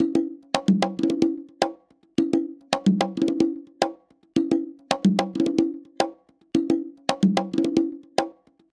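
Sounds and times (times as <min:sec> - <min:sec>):
latin conga loop: 0:00.0 - 0:08.7.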